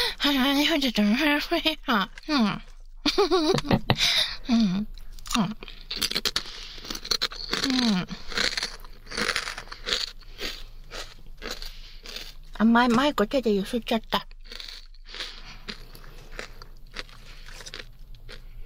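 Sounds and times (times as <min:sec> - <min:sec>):
speech: 0:00.2 - 0:06.4, 0:07.7 - 0:08.2, 0:12.6 - 0:14.3
kata-age hard-fried potato chips crunching as they are chewed: 0:05.0 - 0:13.2, 0:14.2 - 0:18.6.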